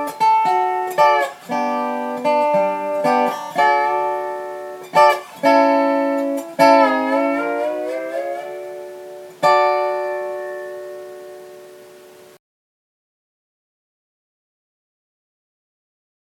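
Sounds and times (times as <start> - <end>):
steel guitar: 0.0 - 12.4.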